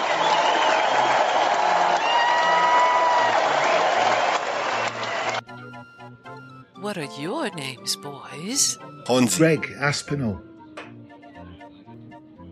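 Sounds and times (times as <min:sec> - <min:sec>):
audience applause: 0:00.0 - 0:05.4
speech: 0:06.9 - 0:10.5.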